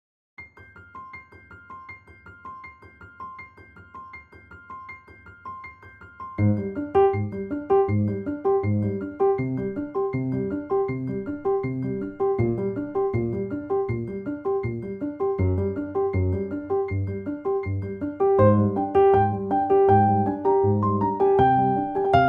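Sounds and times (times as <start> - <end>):
piano sketch: 0.4 - 22.2.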